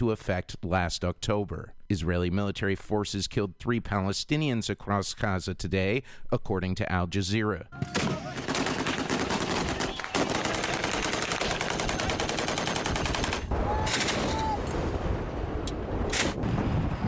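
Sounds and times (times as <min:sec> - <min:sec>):
speech: 0:00.0 - 0:08.5
gunfire from Yemeni government forces shooting at Houthi fighters: 0:08.0 - 0:14.2
wind buffeting the microphone: 0:12.1 - 0:17.0.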